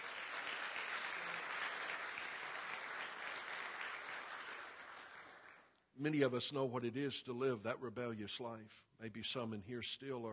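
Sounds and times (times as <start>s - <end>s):
audience clapping: 0.0s - 5.8s
speech: 6.0s - 10.3s.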